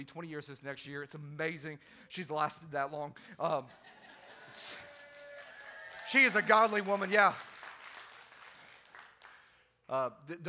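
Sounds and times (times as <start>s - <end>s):
speech: 0.0s - 4.9s, 6.1s - 7.5s, 9.9s - 10.4s
laughter: 3.4s - 5.1s
audience clapping: 4.6s - 9.7s.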